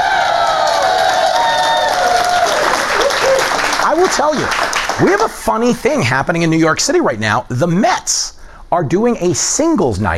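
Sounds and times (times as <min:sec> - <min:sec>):
New York studio audience whooping and shouting: 0:00.0 - 0:04.3
New York studio audience clapping for Fox News Saturday Night: 0:00.0 - 0:05.4
speech: 0:04.1 - 0:10.1.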